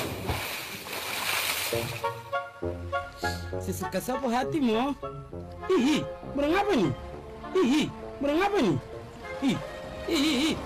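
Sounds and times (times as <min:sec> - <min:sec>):
splash of someone jumping into sea water: 0:00.0 - 0:02.1
speech: 0:01.7 - 0:02.9, 0:03.5 - 0:10.6.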